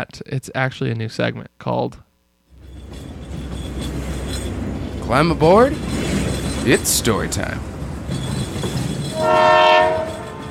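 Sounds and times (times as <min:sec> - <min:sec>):
speech: 0:00.0 - 0:02.1, 0:05.1 - 0:06.0, 0:06.6 - 0:07.7, 0:09.2 - 0:09.5
passing train rumbling: 0:02.5 - 0:10.4
train horn: 0:09.1 - 0:10.4.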